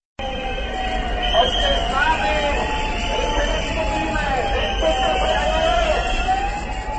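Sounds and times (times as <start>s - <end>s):
wavering siren tones: 0.2s - 6.9s
dense crowd roaring at a protest march: 0.4s - 6.9s
shrill whistles: 1.2s - 6.2s.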